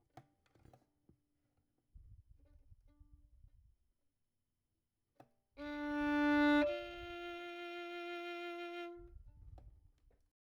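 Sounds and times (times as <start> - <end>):
violin: 5.6 - 10.0.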